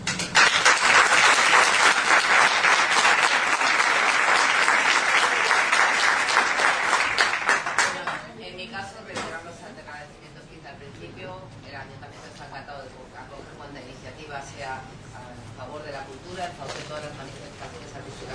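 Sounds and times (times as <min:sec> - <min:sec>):
audience applause: 0:00.0 - 0:08.2.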